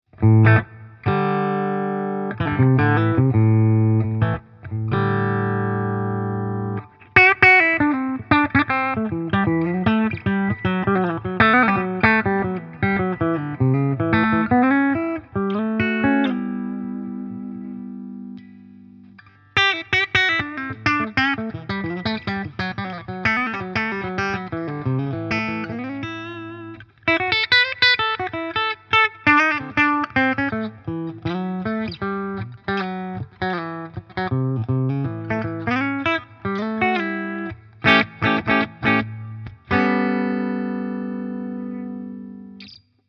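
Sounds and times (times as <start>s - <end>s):
Harley Benton SC Custom III electric guitar with bridge coil split clean: 0.1s - 42.8s.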